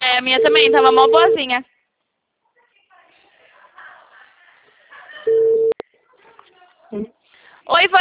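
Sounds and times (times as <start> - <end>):
speech: 0.2 - 1.8, 6.9 - 8.0
telephone busy signal after a dropped call: 0.4 - 1.5, 5.3 - 5.8.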